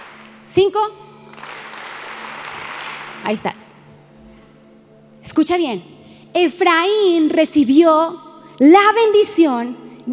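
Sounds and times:
audience applause: 0.0s - 0.3s, 1.3s - 3.2s
speech: 0.5s - 1.0s, 3.2s - 3.6s, 5.3s - 10.1s.

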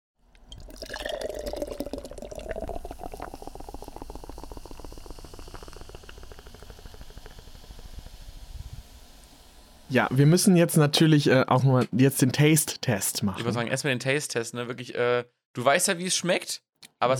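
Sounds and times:
nitro beer can poured into glass: 0.3s - 7.8s
fizzy bubbling and crackling beer foam hiss: 1.0s - 10.2s
speech: 9.9s - 17.1s.

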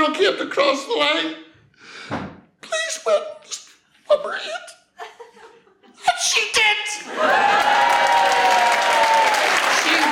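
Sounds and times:
speech: 0.1s - 2.2s, 3.1s - 3.5s, 4.1s - 4.7s, 6.2s - 8.1s
people cheering: 7.0s - 10.1s.

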